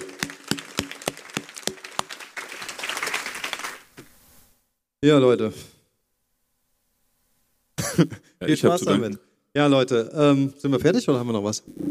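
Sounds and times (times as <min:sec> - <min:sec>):
audience applause: 0:00.0 - 0:04.0
speech: 0:05.0 - 0:05.7, 0:08.0 - 0:11.8.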